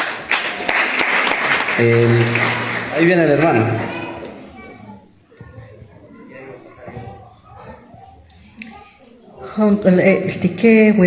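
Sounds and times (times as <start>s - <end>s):
audience applause: 0.0s - 4.6s
speech: 1.8s - 4.0s, 9.6s - 11.0s.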